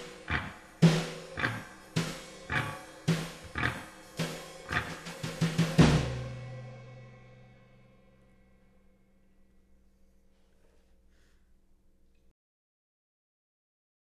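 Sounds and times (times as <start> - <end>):
karaoke singing: 0.0 - 7.4.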